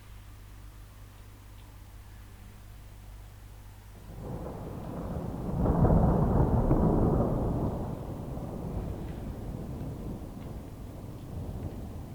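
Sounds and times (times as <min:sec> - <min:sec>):
rain: 0:00.0 - 0:12.1
thunder: 0:04.0 - 0:12.1.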